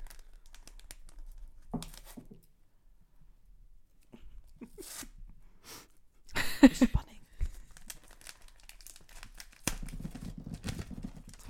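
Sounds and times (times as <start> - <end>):
paper crinkling as a package is unwrapped: 0.0 - 2.3, 7.4 - 11.4
speech: 6.6 - 7.0.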